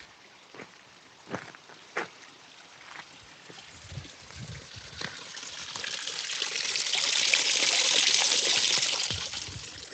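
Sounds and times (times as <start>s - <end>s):
water running from a tap: 4.6s - 9.9s.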